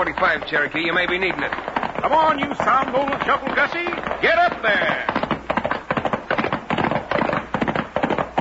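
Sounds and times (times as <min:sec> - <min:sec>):
speech: 0:00.0 - 0:05.2
gunshots: 0:00.0 - 0:08.4.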